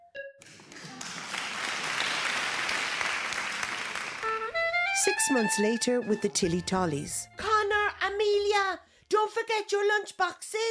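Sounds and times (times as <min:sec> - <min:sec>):
audience applause: 0:00.4 - 0:04.9
speech: 0:05.0 - 0:07.4, 0:08.0 - 0:10.6.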